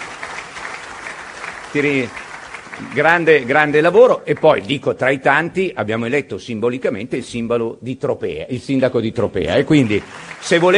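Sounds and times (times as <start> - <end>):
audience applause: 0.0 - 4.8, 9.6 - 10.7
speech: 1.7 - 10.7.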